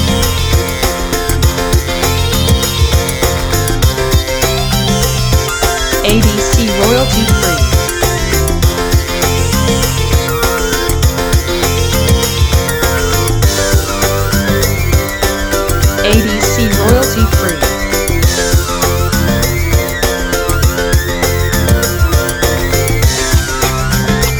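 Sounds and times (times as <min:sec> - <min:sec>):
happy piano music: 0:00.0 - 0:24.3.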